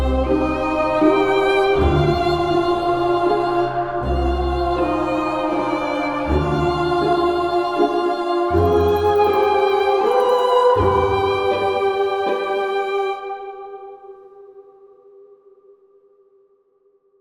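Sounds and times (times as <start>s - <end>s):
haunted mansion ambience: 0.2s - 13.6s.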